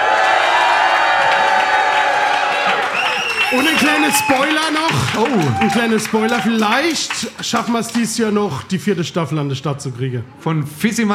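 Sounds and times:
crowd cheering and shouting: 0.0 - 8.3
speech: 3.5 - 11.1.

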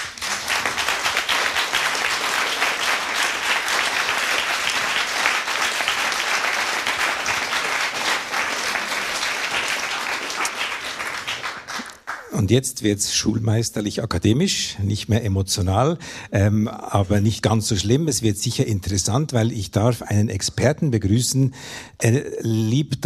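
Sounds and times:
audience applause: 0.0 - 12.3
speech: 12.5 - 23.0.

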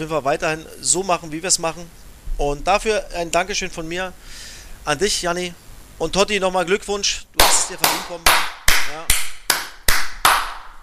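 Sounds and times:
speech: 0.0 - 9.1
person clapping hands: 7.4 - 10.8.

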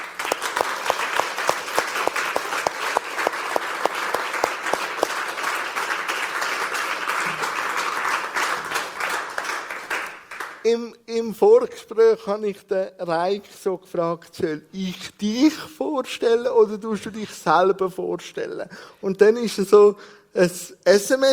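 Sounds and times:
warm applause welcoming a guest: 0.0 - 10.6
speech: 10.7 - 21.3.

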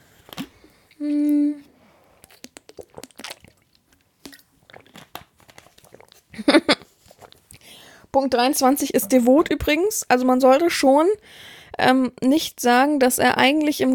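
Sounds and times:
small mouth clicks: 0.3 - 6.2
person taking a drink with wet sips: 0.3 - 6.3
swallowing: 0.3 - 7.7
speech: 1.0 - 1.2, 8.2 - 13.9.

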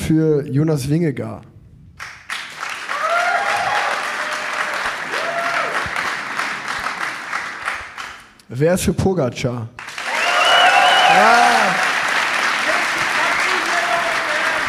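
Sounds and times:
speech: 0.1 - 1.5, 8.5 - 9.8, 11.1 - 11.8
live audience cheering and applause: 2.3 - 8.2, 9.8 - 14.6.

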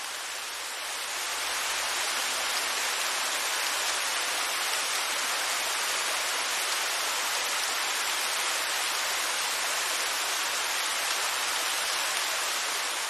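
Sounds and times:
waterfall flowing water: 0.0 - 13.0.

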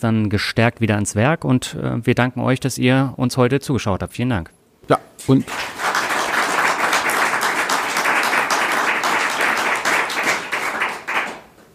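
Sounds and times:
speech: 0.0 - 5.8
applause: 5.4 - 11.7.

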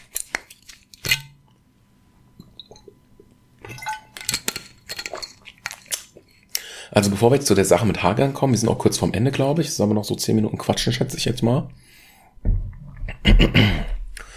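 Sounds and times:
water glass clinking: 1.0 - 1.4, 2.4 - 3.0, 3.6 - 6.0
speech: 6.9 - 12.0, 13.4 - 13.8.

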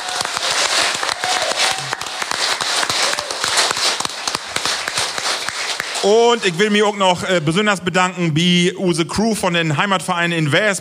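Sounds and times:
audience applause: 0.0 - 7.5
speech: 6.0 - 10.7.

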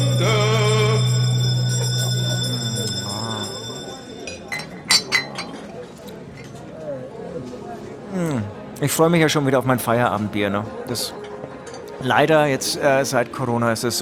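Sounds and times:
bell ringing: 0.0 - 5.1
speech: 8.8 - 11.2, 12.0 - 14.0.

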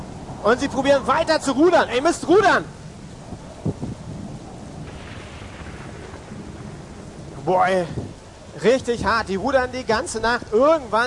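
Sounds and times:
rain: 0.0 - 11.0
wind: 0.0 - 11.0
speech: 0.4 - 2.8, 7.5 - 11.0
thunder: 3.3 - 9.4.

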